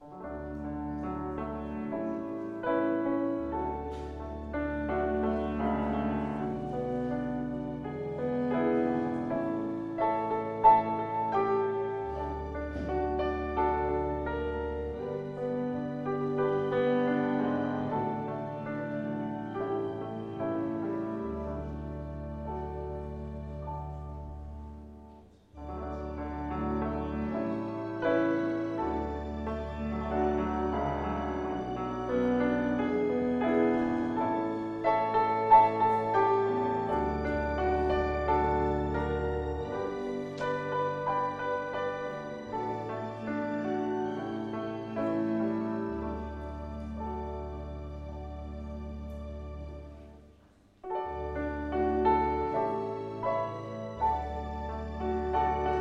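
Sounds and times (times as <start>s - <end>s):
prelude music: 0.0s - 55.7s.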